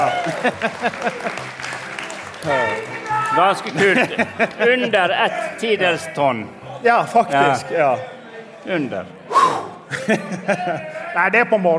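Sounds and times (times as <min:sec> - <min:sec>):
speech: 0:00.0 - 0:01.6, 0:02.4 - 0:11.7
applause: 0:00.0 - 0:04.8
laughter: 0:00.0 - 0:06.3, 0:09.4 - 0:11.2.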